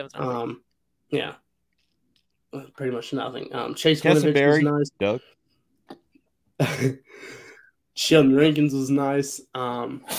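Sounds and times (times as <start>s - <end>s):
speech: 0.0s - 1.4s, 2.5s - 6.0s, 6.6s - 7.4s, 8.0s - 10.1s
short intake of breath: 7.0s - 7.8s.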